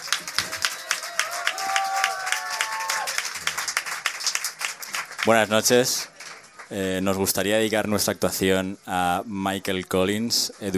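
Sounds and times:
audience applause: 0:00.0 - 0:06.9
speech: 0:05.2 - 0:06.1, 0:06.7 - 0:10.7.

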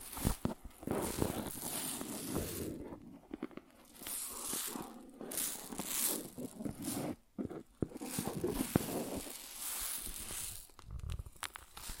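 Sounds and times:
scraping and crackling: 0:00.0 - 0:11.9
grain rustling and pouring: 0:01.0 - 0:02.7, 0:03.8 - 0:07.1, 0:07.9 - 0:11.9.

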